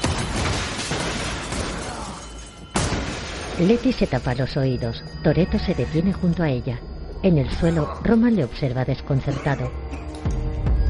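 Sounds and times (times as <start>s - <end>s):
gunshots at surveillance screens in an action film: 0.0s - 3.6s
surveillance screens shattering in an action film: 0.0s - 4.3s
speech: 3.6s - 10.0s.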